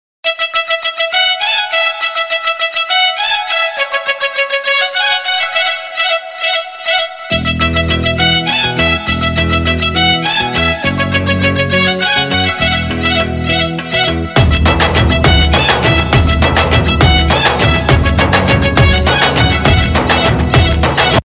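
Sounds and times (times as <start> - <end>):
instrumental tone: 0.2 - 21.2.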